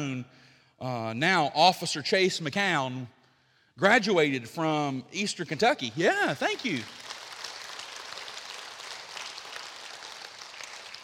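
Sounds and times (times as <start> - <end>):
speech: 0.0 - 3.2, 3.8 - 7.0
crowd clapping: 5.8 - 11.0.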